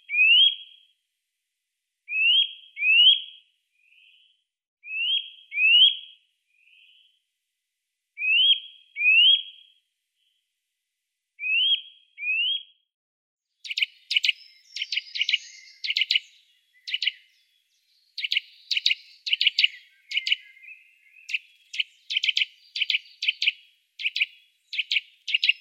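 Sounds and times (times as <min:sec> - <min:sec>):
Eurasian nuthatch calls: 0:00.1 - 0:00.7, 0:02.1 - 0:03.2, 0:04.8 - 0:06.0, 0:08.2 - 0:09.6, 0:11.4 - 0:12.6, 0:13.6 - 0:25.5.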